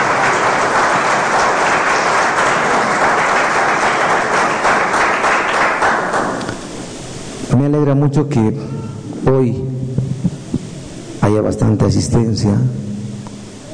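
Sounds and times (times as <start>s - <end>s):
audience applauding: 0.0s - 6.5s
speech: 7.7s - 9.7s, 11.3s - 12.9s.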